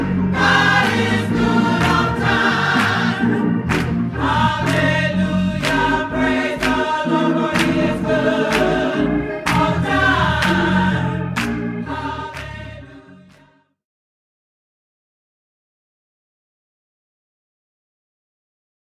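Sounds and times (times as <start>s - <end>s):
African American gospel music: 0.0s - 13.8s.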